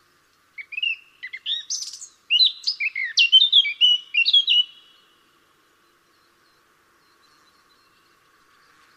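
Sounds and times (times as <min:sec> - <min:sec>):
Eurasian blackcap Sylvia atricapilla song of hurried warbling and mellow whistles: 0:00.6 - 0:04.9.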